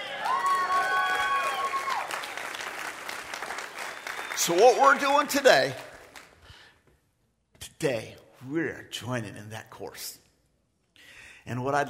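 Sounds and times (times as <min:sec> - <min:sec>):
audience applauding and cheering: 0:00.0 - 0:06.4
speech: 0:04.4 - 0:05.8, 0:07.8 - 0:10.2, 0:11.4 - 0:11.8.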